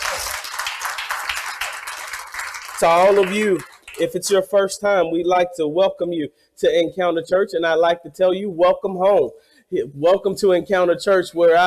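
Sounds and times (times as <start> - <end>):
audience hand clapping: 0.0 - 4.5
speech: 2.8 - 11.6.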